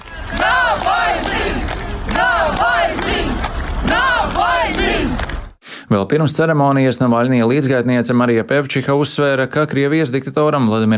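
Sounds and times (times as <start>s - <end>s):
large crowd chanting a name: 0.0s - 5.6s
speech: 5.9s - 10.9s.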